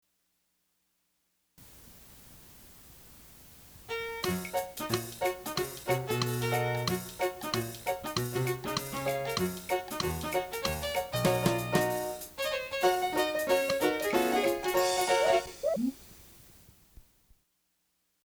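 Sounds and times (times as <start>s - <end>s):
country music: 3.9s - 15.9s.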